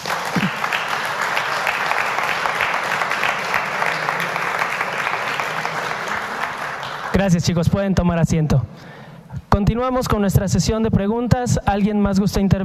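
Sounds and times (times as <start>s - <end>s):
audience applause: 0.0s - 7.4s
speech: 7.2s - 9.0s, 9.6s - 12.6s.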